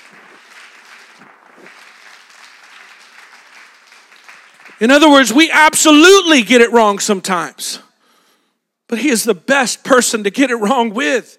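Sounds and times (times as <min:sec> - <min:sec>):
audience clapping hands: 0:00.0 - 0:05.4
speech: 0:04.8 - 0:07.8, 0:08.9 - 0:11.3.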